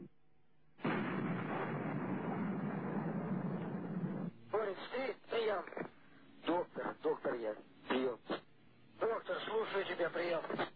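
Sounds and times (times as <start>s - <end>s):
gunfire: 0.8s - 4.3s
voices on a crackly radio link: 4.5s - 10.7s.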